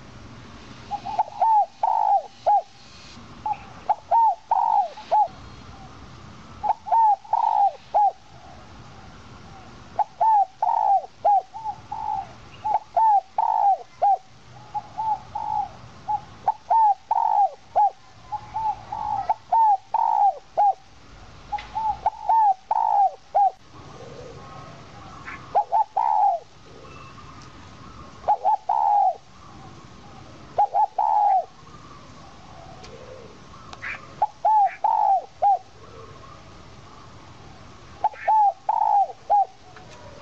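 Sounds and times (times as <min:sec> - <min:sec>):
owl call: 0:00.9 - 0:02.8, 0:03.4 - 0:05.4, 0:06.6 - 0:08.2, 0:10.0 - 0:20.8, 0:21.7 - 0:27.4, 0:28.0 - 0:36.4, 0:38.0 - 0:39.6.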